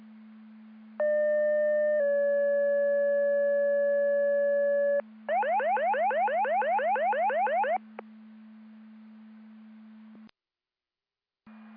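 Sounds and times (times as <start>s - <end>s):
siren: 1.0s - 7.9s.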